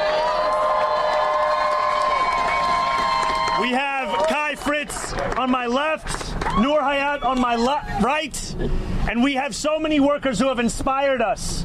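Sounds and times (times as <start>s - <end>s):
audience cheering: 0.0s - 5.3s, 6.3s - 7.7s
audience applause: 0.0s - 6.6s
speech: 3.6s - 11.6s.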